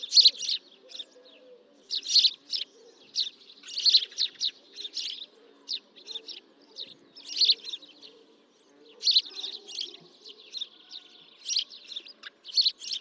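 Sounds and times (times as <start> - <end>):
house sparrows Passer domesticus chirping: 0.0 - 12.9.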